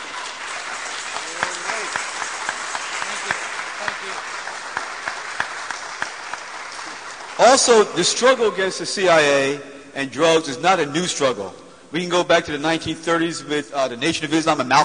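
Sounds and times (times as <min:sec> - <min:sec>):
audience applause: 0:00.0 - 0:08.4
speech: 0:07.4 - 0:14.8.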